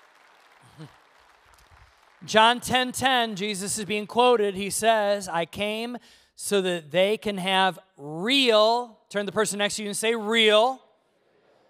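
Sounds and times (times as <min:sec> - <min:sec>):
audience applause: 0:00.0 - 0:02.3
speech: 0:00.7 - 0:01.0, 0:02.2 - 0:10.8.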